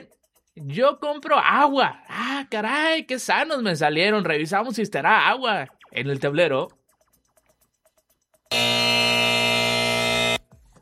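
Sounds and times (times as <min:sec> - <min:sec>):
speech: 0:00.0 - 0:06.8
game show wrong-answer strike buzzer: 0:08.5 - 0:10.4.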